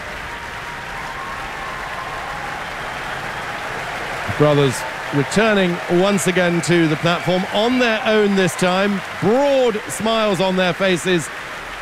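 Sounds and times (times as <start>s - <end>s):
large concert hall audience applause demanding an encore: 0.0s - 11.8s
speech: 4.4s - 11.4s.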